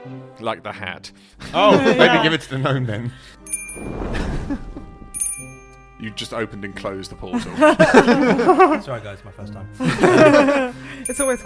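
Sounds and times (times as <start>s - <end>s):
speech: 0.4s - 4.7s, 6.0s - 11.4s
laughter: 1.4s - 3.1s, 7.3s - 9.0s, 9.8s - 11.0s
bell ringing: 3.4s - 6.0s, 11.0s - 11.4s.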